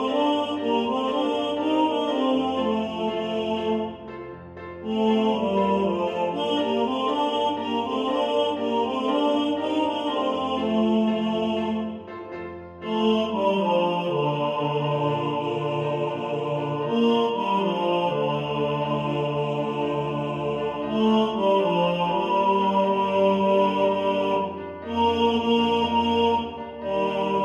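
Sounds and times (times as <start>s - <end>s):
second tenor singing: 0.0s - 27.4s.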